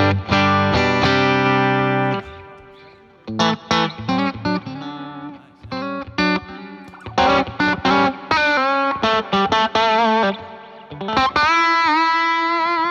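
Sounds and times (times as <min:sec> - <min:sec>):
electric guitar played through heavy distortion and chorus effects: 0:00.0 - 0:12.9.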